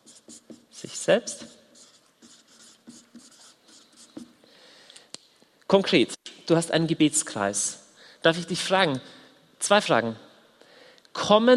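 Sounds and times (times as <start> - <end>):
handwriting with a pen: 0.0 - 4.4
speech: 1.1 - 1.5, 5.7 - 10.2, 11.3 - 11.5.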